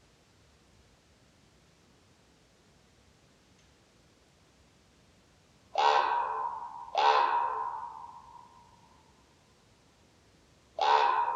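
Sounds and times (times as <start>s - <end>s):
common raven croaking: 5.8s - 8.6s, 10.8s - 11.3s.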